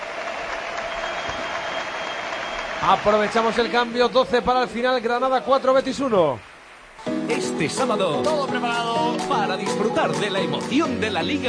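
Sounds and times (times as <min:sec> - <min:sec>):
stadium crowd applauding a substituted football player during Granada–Betis match: 0:00.0 - 0:07.9
speech: 0:02.8 - 0:06.5, 0:07.3 - 0:11.4.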